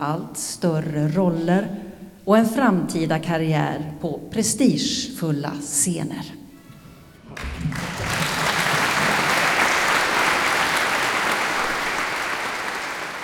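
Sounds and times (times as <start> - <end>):
speech: 0.0 - 6.4
applause at a scholarship award ceremony concert: 7.3 - 13.2.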